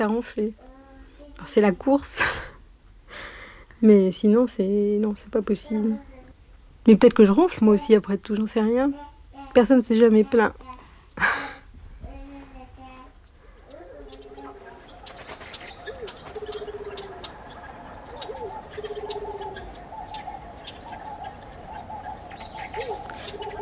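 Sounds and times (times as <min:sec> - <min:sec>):
speech: 0:00.0 - 0:00.6, 0:01.4 - 0:02.5, 0:03.1 - 0:06.1, 0:06.8 - 0:11.3
steady outdoor park hum: 0:00.0 - 0:23.6
faint higher bird chirps: 0:13.2 - 0:23.6
pigeons cooing in a park: 0:13.3 - 0:23.6.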